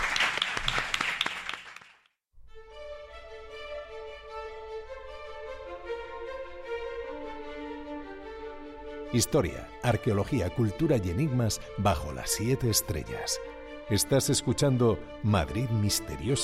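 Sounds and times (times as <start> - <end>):
applause from small group: 0.0 - 2.2
sustained music with steady tones: 2.5 - 16.4
speech: 9.1 - 16.4.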